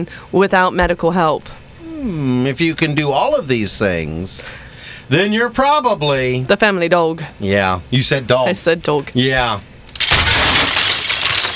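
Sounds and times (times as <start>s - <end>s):
speech: 0.0s - 9.7s
china shattering crash: 10.0s - 11.5s.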